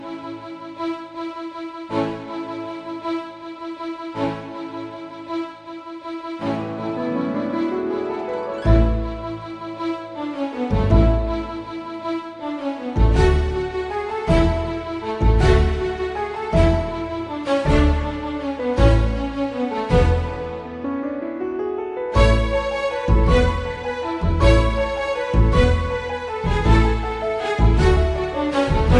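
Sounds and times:
symphony orchestra: 6.4 - 21.0, 22.0 - 28.9.

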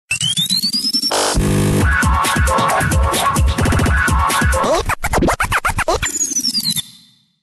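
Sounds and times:
crazy record scratch mix: 1.1 - 6.2.

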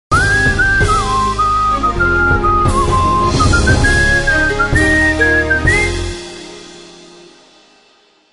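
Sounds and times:
whistle: 0.1 - 6.3.

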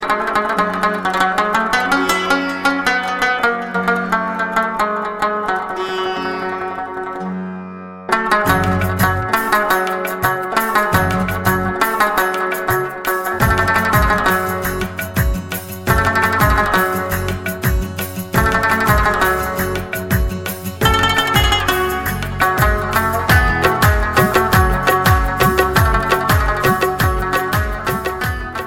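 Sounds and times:
Afghan music: 0.0 - 28.6.

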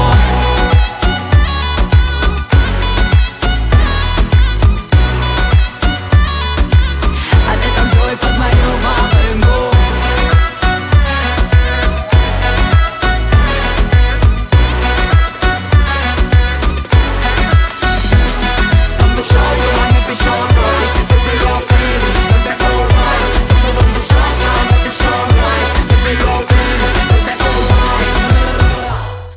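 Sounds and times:
volynka bagpipe: 0.2 - 29.3.

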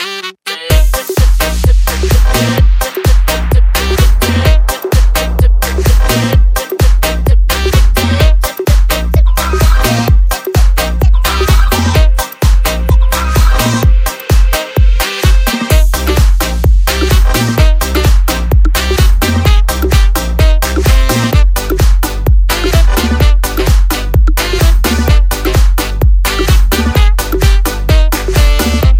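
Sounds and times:
synthetic saxophone: 0.0 - 28.9.

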